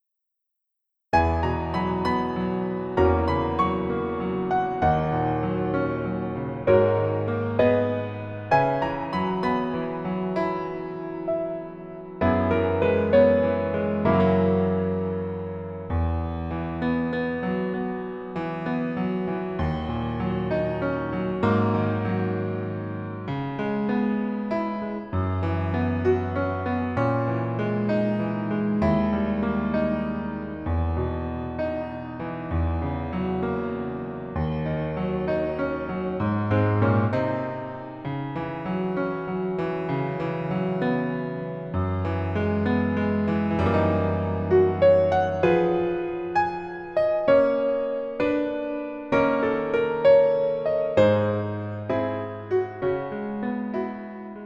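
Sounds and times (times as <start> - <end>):
piano version lowered by one key: 1.1 - 54.4.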